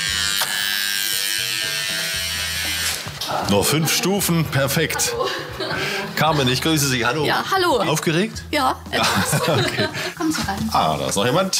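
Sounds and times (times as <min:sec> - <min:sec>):
electric door buzzer opening door: 0:00.0 - 0:03.2
laughter: 0:03.3 - 0:07.4, 0:08.9 - 0:10.4
speech: 0:03.3 - 0:11.5.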